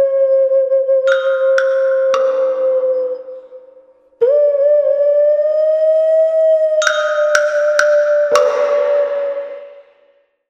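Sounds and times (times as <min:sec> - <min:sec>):
xun vessel flute playing: 0:00.0 - 0:10.2.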